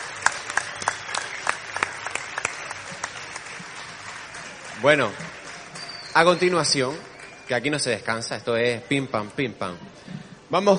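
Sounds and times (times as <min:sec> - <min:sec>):
loud audience applause: 0:00.0 - 0:08.0
speech: 0:04.8 - 0:05.2, 0:06.2 - 0:10.7.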